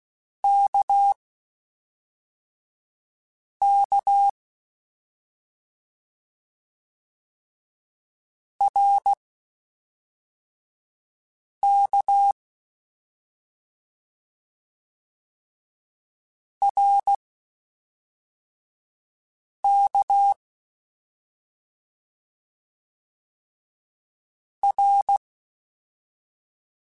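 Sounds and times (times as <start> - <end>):
CW Morse code groups in mixed short runs: 0.5 - 1.2, 3.6 - 4.3, 8.7 - 9.2, 11.6 - 12.4, 16.7 - 17.1, 19.7 - 20.4, 24.6 - 25.2.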